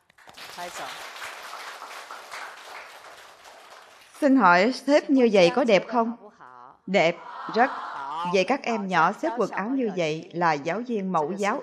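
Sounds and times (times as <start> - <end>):
group applauding a participant at a kindergarten teaching session: 0.0 - 4.5
speech: 0.6 - 1.2, 4.2 - 6.2, 6.9 - 11.6.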